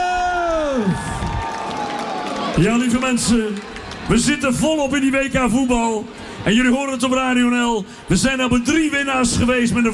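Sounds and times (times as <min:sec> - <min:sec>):
crowd cheering and applauding: 0:00.0 - 0:04.8
speech: 0:00.8 - 0:01.3, 0:02.6 - 0:09.9.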